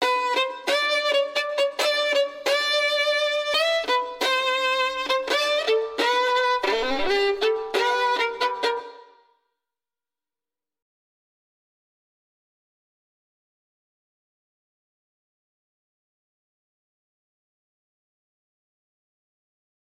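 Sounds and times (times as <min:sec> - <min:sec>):
violin only: 0:00.0 - 0:09.3.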